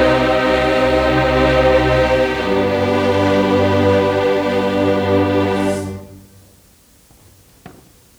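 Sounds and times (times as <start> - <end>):
choral requiem music: 0.0 - 6.4.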